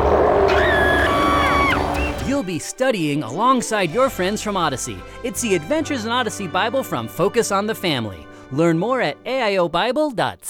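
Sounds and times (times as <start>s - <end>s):
dragon roar: 0.0s - 2.2s
speech: 2.4s - 10.4s.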